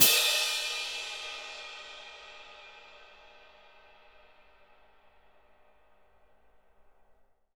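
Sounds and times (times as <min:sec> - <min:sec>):
orchestral cymbal: 0:00.0 - 0:06.0.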